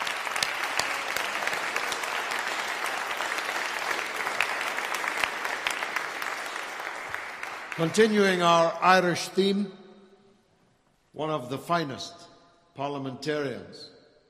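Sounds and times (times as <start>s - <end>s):
audience applause: 0.0s - 8.5s
speech: 7.8s - 9.8s, 11.2s - 13.9s.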